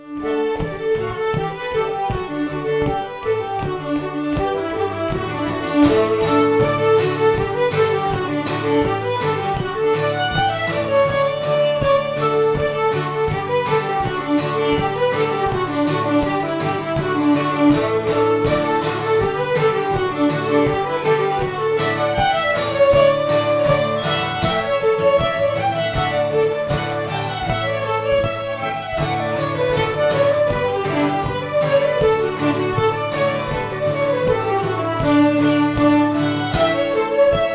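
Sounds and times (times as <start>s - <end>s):
engelska folk dance tune from Blekinge: 0.0s - 37.5s.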